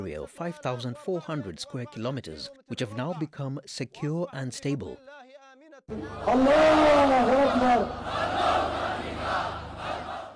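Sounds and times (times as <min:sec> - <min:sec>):
speech: 0:00.0 - 0:05.3, 0:05.9 - 0:09.6
crowd chanting at a rally: 0:05.9 - 0:10.3.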